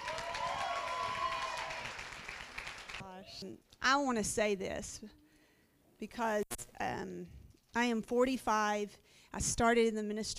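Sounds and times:
conference audience clapping to welcome a speaker: 0:00.0 - 0:03.1
speech: 0:03.4 - 0:05.2, 0:06.0 - 0:10.3.

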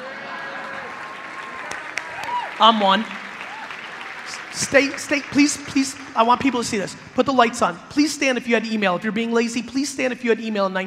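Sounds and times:
audience clapping: 0:00.0 - 0:08.0
speech: 0:02.6 - 0:03.2, 0:04.6 - 0:10.8.

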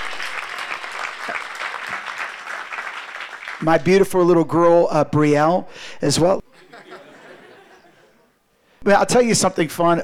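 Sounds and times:
audience clapping: 0:00.0 - 0:03.9
speech: 0:03.6 - 0:06.4, 0:08.9 - 0:10.0
laughter: 0:06.5 - 0:08.4.

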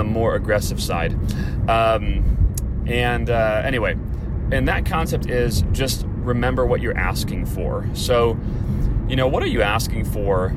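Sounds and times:
engine and road noise inside a moving car: 0:00.0 - 0:10.5
speech: 0:00.0 - 0:10.5.

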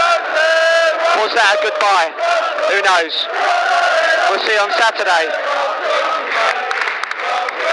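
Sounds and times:
football crowd cheering and chanting: 0:00.0 - 0:07.7
speech: 0:01.3 - 0:03.6, 0:04.2 - 0:06.6.

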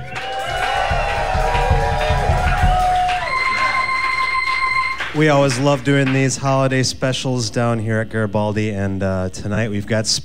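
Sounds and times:
high sustained whoops or whistles: 0:00.0 - 0:05.2
audience cheering at a holiday live show in a club: 0:00.0 - 0:06.2
speech: 0:05.2 - 0:10.2.

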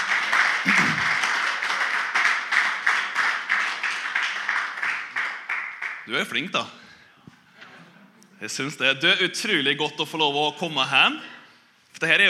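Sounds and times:
crowd audience applause: 0:00.0 - 0:06.0
speech: 0:06.1 - 0:06.8, 0:08.4 - 0:11.3, 0:12.0 - 0:12.2.

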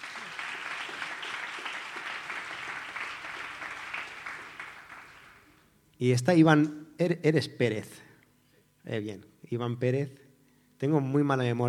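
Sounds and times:
audience applause: 0:00.0 - 0:05.6
speech: 0:06.0 - 0:08.1, 0:08.9 - 0:10.2, 0:10.8 - 0:11.6.

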